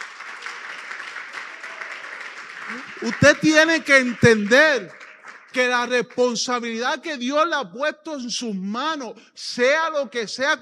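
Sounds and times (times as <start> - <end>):
audience applause: 0.0 - 6.4
speech: 2.7 - 10.6.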